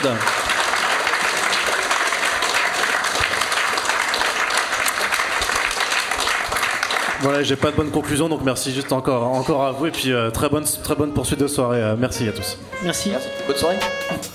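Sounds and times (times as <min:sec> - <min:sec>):
speech: 0:00.0 - 0:00.4, 0:07.2 - 0:14.3
crowd audience applause: 0:00.0 - 0:09.2.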